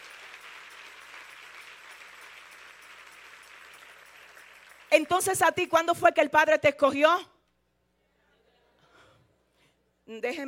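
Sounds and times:
crowd applauding: 0.0s - 5.4s
speech: 4.9s - 7.3s, 10.1s - 10.4s.

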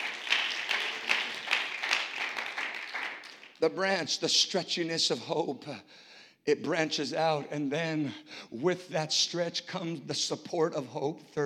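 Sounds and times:
audience clapping hands in praise: 0.0s - 3.7s
speech: 3.6s - 11.4s.

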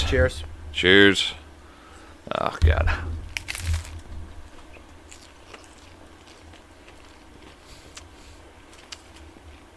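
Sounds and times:
speech: 0.0s - 1.4s, 2.3s - 3.2s
crisp chewing: 3.2s - 9.7s
crunchy bite into a Taco Bell taco: 3.3s - 9.7s.

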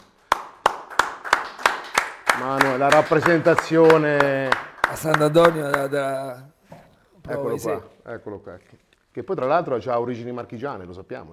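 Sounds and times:
hand claps: 0.0s - 6.0s
speech: 2.4s - 6.6s, 7.2s - 11.3s.

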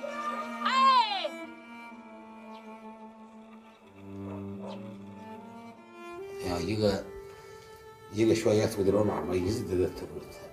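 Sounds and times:
person crying out in a high quavering wail: 0.1s - 1.4s
speech: 6.6s - 7.1s, 8.1s - 10.5s.

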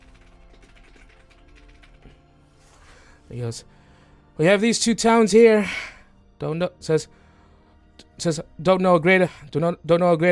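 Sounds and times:
rapid keyboard typing: 0.0s - 2.3s
speech: 3.3s - 3.8s, 4.4s - 7.2s, 8.2s - 10.3s.

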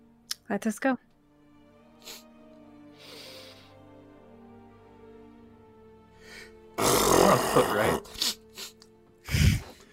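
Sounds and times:
speech: 0.5s - 1.1s, 7.3s - 8.2s
burp: 6.8s - 8.2s.

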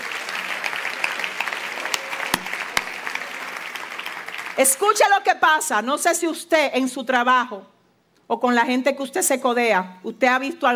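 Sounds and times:
audience applause: 0.0s - 4.6s
speech: 4.6s - 7.7s, 8.3s - 10.7s.

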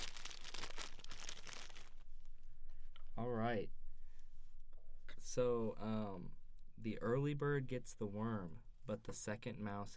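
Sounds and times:
fortune cookie plastic wrapper crinkled and torn open: 0.0s - 2.1s
speech: 3.2s - 3.8s, 5.3s - 9.9s.

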